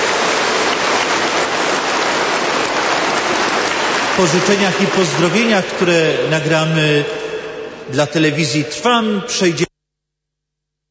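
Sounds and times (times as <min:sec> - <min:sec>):
audience applause: 0:00.0 - 0:07.2
speech: 0:04.2 - 0:07.2, 0:07.9 - 0:09.7.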